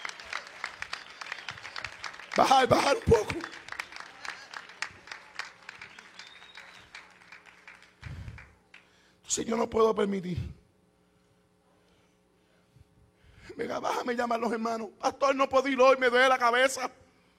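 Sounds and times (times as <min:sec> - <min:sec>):
audience applauding: 0:00.0 - 0:08.9
speech: 0:02.4 - 0:03.6, 0:09.4 - 0:10.6, 0:13.6 - 0:17.0.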